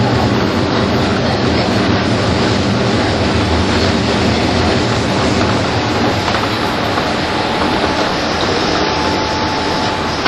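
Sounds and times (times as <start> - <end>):
train running between Tokyo and Takao: 0.0 - 10.2.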